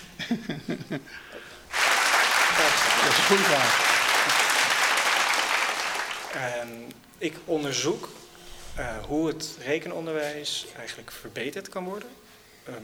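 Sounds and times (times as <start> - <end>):
speech: 0.2 - 1.4, 3.2 - 4.4, 6.3 - 8.2, 8.8 - 12.8
audience applause: 1.7 - 6.5.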